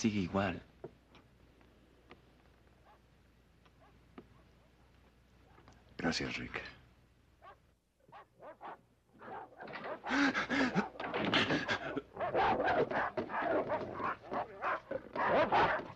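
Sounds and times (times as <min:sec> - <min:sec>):
speech: 0:00.0 - 0:00.7, 0:06.0 - 0:06.8, 0:08.5 - 0:14.2
several dogs barking and yipping: 0:02.8 - 0:03.1, 0:03.7 - 0:04.6, 0:07.4 - 0:15.9.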